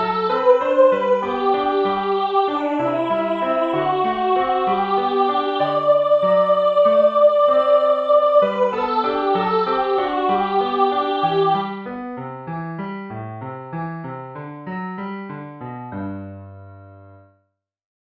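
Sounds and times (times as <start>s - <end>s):
voice and piano: 0.0s - 12.9s.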